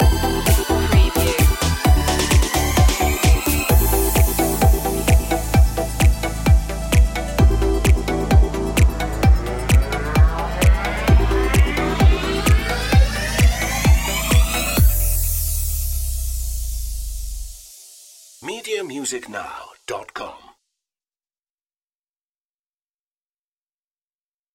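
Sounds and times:
feel-good electro pop track with upbeat vocals and synth: 0.0 - 16.9.

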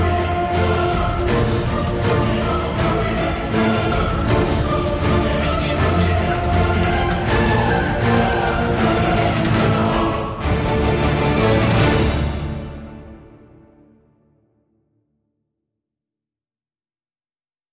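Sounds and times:
lower percussion: 0.0 - 13.2
choir singing: 0.0 - 13.5.

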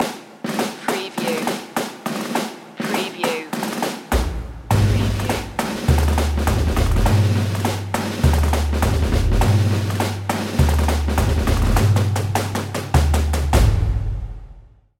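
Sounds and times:
tattoo drumline playing: 0.0 - 14.4.

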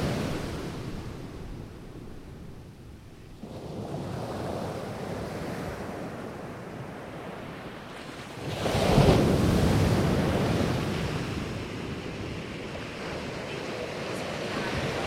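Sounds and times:
waves crashing: 0.0 - 15.0.

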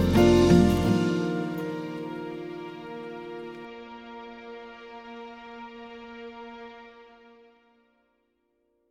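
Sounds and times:
acoustic music: 0.0 - 7.1.

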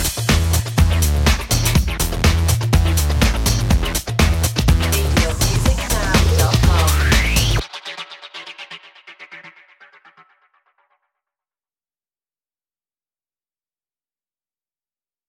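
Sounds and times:
funk house music: 0.0 - 10.8.

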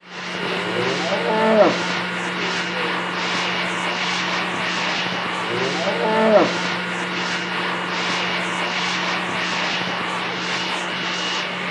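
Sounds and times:
vacuum cleaning a cow at auction: 0.0 - 11.6.

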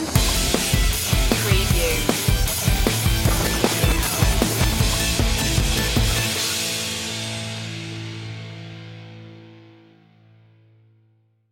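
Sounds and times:
music stinger: 0.2 - 10.4.

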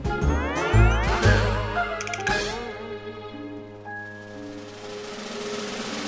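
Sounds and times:
cartoon jumping gnome sound: 0.2 - 2.7.

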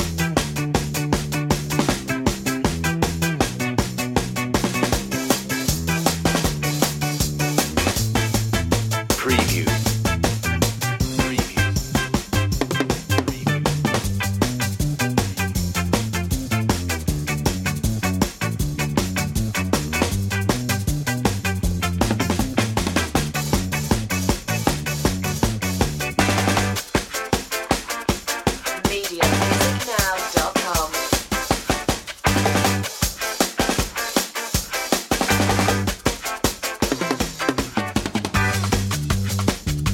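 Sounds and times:
ska music without horns or organ: 0.0 - 39.9.

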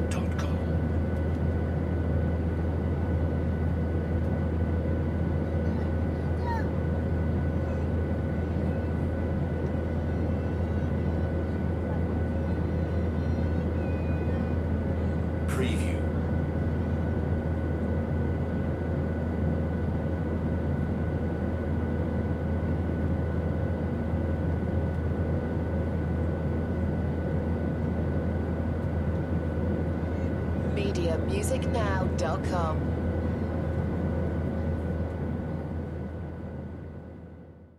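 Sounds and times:
airplane interior cabin noise: 0.0 - 37.7.

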